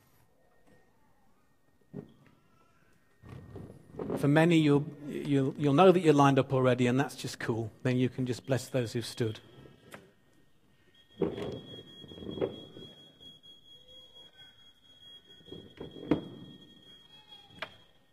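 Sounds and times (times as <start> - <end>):
speech: 4.2 - 9.5
alarm going off: 4.5 - 18.1.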